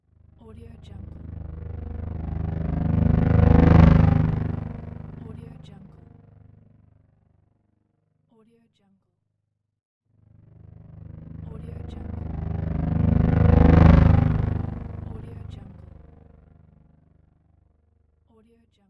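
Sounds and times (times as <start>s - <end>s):
motorbike engine: 0.5s - 6.7s, 10.2s - 17.1s.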